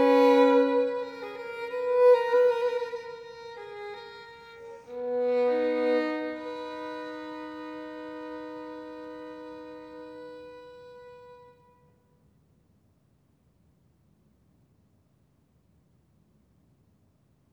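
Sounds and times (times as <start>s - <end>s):
violin sonata in A minor andante: 0.0s - 11.6s.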